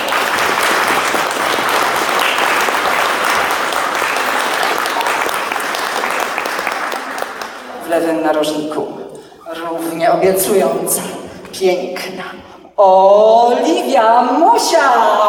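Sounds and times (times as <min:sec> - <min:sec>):
audience applause: 0:00.0 - 0:07.8
speech: 0:07.9 - 0:15.2.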